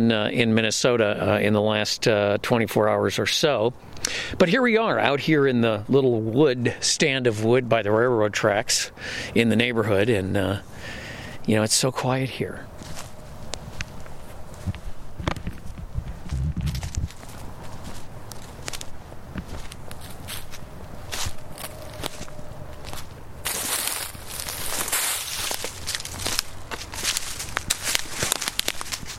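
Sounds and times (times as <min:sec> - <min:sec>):
speech: 0:00.0 - 0:12.9
footsteps walking on ground in woods: 0:10.4 - 0:29.1.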